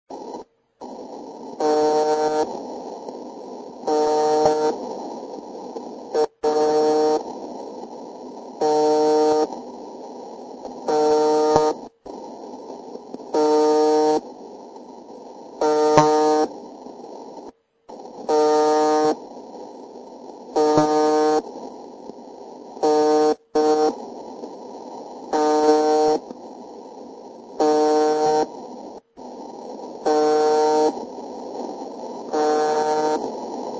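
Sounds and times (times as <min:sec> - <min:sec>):
buzzer: 0:01.6 - 0:02.5, 0:03.9 - 0:04.8, 0:06.2 - 0:07.2, 0:08.6 - 0:09.5, 0:10.9 - 0:11.8, 0:13.4 - 0:14.2, 0:15.6 - 0:16.5, 0:18.3 - 0:19.2, 0:20.6 - 0:21.4, 0:22.9 - 0:24.0, 0:25.3 - 0:26.2, 0:27.6 - 0:28.5, 0:30.0 - 0:31.0, 0:32.3 - 0:33.2.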